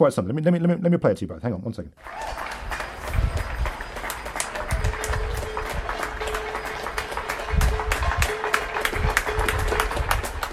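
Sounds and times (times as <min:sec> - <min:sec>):
speech: 0:00.0 - 0:02.6
people clapping for medical staff: 0:02.0 - 0:10.5.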